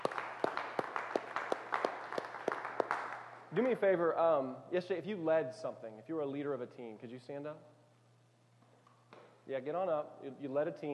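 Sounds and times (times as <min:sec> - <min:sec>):
church congregation round of applause: 0:00.0 - 0:03.8
speech: 0:03.5 - 0:07.7, 0:09.5 - 0:10.9.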